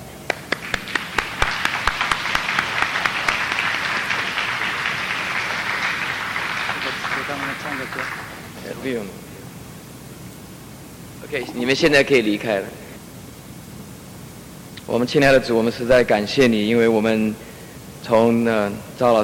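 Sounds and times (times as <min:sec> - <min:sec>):
audience applause: 0:00.3 - 0:08.6
speech: 0:07.9 - 0:09.2, 0:11.3 - 0:12.8, 0:14.9 - 0:17.4, 0:18.0 - 0:19.2.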